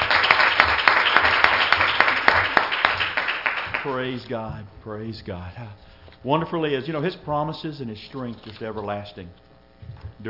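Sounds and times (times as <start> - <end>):
audience clapping: 0.0 - 4.2
speech: 3.8 - 10.2.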